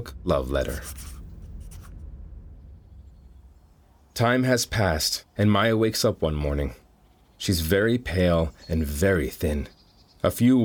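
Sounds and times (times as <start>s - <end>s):
speech: 0.0s - 1.2s, 4.2s - 6.8s, 7.4s - 10.6s
faint low hum: 0.0s - 9.9s
pencil-like scratching of drawing a picture on paper: 0.5s - 1.9s.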